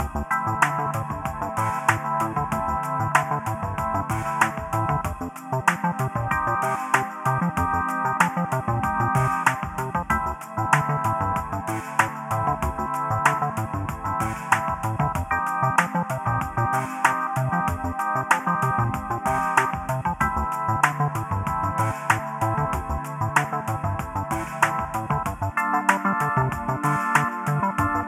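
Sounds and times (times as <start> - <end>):
lo-fi puzzle music: 0.0 - 28.0.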